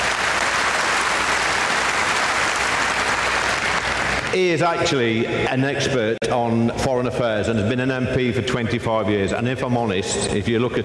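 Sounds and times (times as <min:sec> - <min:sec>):
audience clapping: 0:00.0 - 0:04.8
speech: 0:04.4 - 0:10.8.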